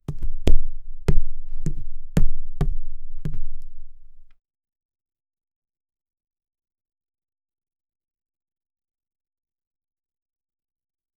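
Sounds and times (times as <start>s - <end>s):
tapping on leather: 0.0s - 4.3s.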